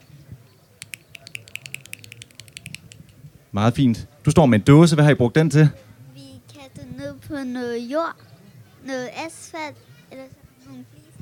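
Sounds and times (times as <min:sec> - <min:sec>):
imitated woodpecker drumming on a tree: 0:00.8 - 0:03.2
speech: 0:03.5 - 0:05.8, 0:07.4 - 0:11.0.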